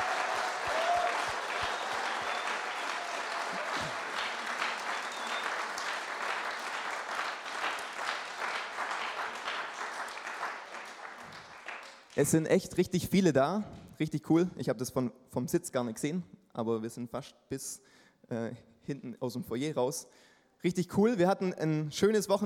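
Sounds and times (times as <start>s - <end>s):
audience applause: 0.0s - 12.2s
speech: 12.2s - 22.4s.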